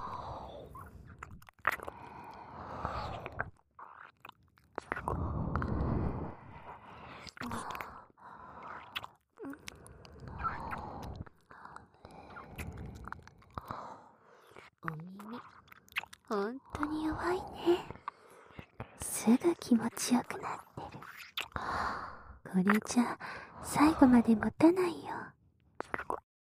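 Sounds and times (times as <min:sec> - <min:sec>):
wet ASMR ear-licking slurping and smacking: 0:00.5 - 0:05.7, 0:06.7 - 0:13.7, 0:14.4 - 0:17.0, 0:21.0 - 0:21.5, 0:25.8 - 0:26.2
speech: 0:16.3 - 0:17.9, 0:19.3 - 0:20.7, 0:22.5 - 0:25.3.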